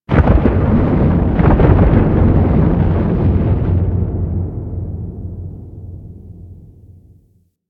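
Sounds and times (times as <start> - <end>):
large earth crack: 0.1 - 4.8.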